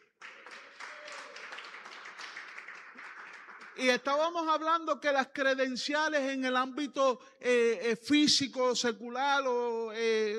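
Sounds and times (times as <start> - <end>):
audience applause: 0.0 - 3.8
speech: 3.8 - 10.3.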